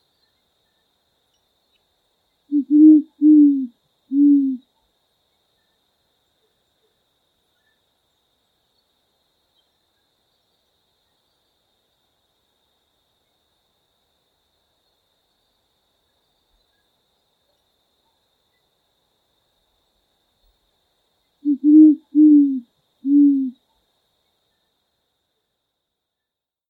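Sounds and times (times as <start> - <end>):
jacurutu calling: 2.5 - 4.6, 21.4 - 23.6.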